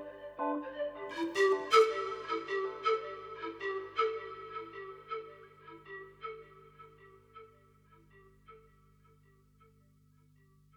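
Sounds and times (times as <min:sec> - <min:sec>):
spooky swamp music: 0:00.0 - 0:07.7.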